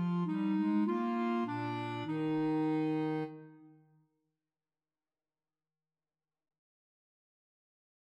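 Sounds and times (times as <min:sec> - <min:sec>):
clarinet trio: 0:00.0 - 0:03.6.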